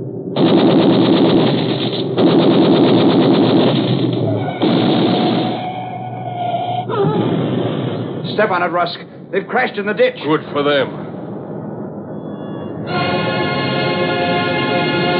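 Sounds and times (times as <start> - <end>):
engine roaring: 0.0 - 15.1
rapid bursts of gunfire: 0.4 - 5.8
sustained tone: 4.3 - 15.1
speech: 8.4 - 11.0.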